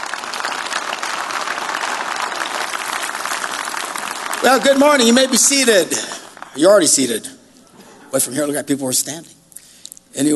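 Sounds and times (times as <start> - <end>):
congregation applauding at a church service welcoming a pastor: 0.0 - 7.2
speech: 4.4 - 7.4, 8.1 - 9.4, 10.2 - 10.3.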